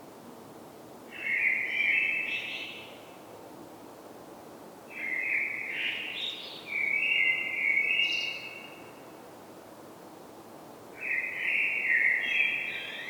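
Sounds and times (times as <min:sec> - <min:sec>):
Common blackbird song: 0:01.2 - 0:02.9, 0:04.9 - 0:08.8, 0:11.0 - 0:13.0.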